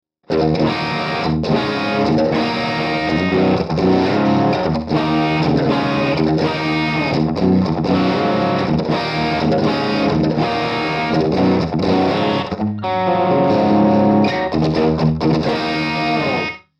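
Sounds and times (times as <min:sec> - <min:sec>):
Marshall JTM 45 guitar amplifier all the way up: 0:00.2 - 0:16.7.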